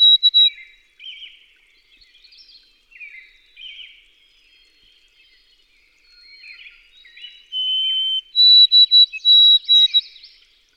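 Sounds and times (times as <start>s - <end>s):
White-throated sparrow whistled song: 0.0s - 0.7s, 6.0s - 10.4s.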